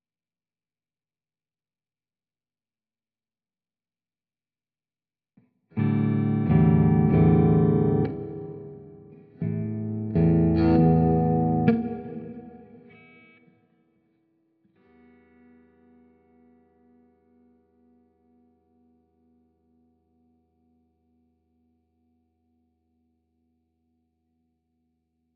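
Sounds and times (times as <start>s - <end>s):
guitar with effects: 5.4s - 22.2s.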